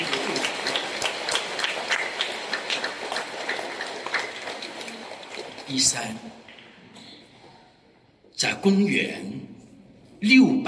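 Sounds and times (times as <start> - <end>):
crowd warm applause: 0.0 - 6.2
speech: 5.7 - 6.4, 8.4 - 9.5, 10.2 - 10.6.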